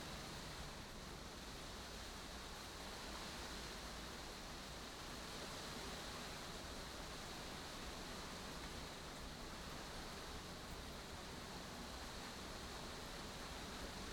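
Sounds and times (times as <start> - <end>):
rain on a 10 m2 glass greenhouse heard from inside: 0.1 - 14.1.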